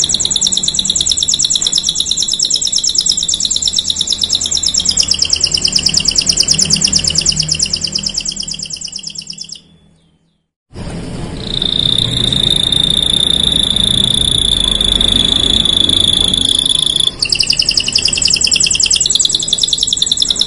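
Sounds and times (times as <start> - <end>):
canary song: 0.0 - 10.6, 11.4 - 20.4
low rumbling background noise: 4.5 - 19.0.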